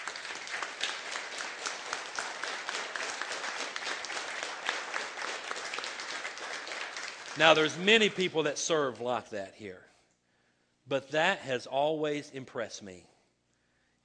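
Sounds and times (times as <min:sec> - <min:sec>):
audience applause: 0:00.0 - 0:08.3
speech: 0:07.4 - 0:09.9, 0:10.9 - 0:13.1.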